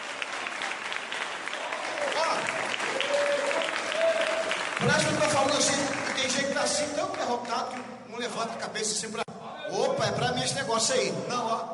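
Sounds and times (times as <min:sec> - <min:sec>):
church audience applauding: 0:00.0 - 0:07.9
speech: 0:04.8 - 0:11.7.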